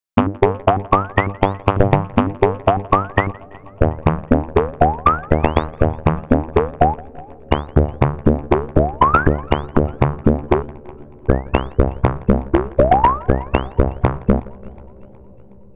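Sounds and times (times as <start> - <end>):
gated synth sequence of 16 steps: 0.4 - 14.8.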